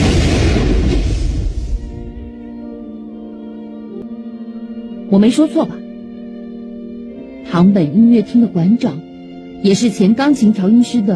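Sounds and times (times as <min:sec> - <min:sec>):
heavy bomb explosion set off by sensors inside concert hall organ pipes: 0:00.0 - 0:02.5
speech: 0:05.1 - 0:05.8, 0:07.5 - 0:11.1.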